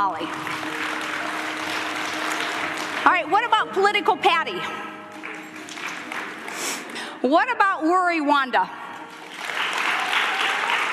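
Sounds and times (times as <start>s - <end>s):
speech: 0.0s - 0.9s, 3.0s - 5.0s, 7.2s - 8.8s
crowd clapping: 0.0s - 3.9s, 5.0s - 7.0s, 9.0s - 10.9s.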